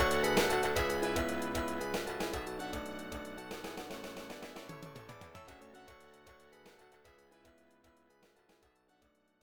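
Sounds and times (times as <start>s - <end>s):
victory march: 0.0s - 5.5s.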